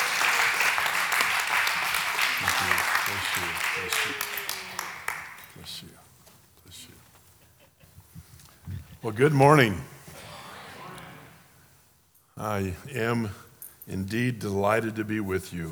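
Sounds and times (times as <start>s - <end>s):
laughter: 0.0s - 5.7s, 7.2s - 11.6s
audience applause welcoming a speaker to the stage at a church service: 0.0s - 5.8s, 10.1s - 11.5s
speech: 2.6s - 4.4s, 5.6s - 6.0s, 9.0s - 9.9s, 12.4s - 15.7s.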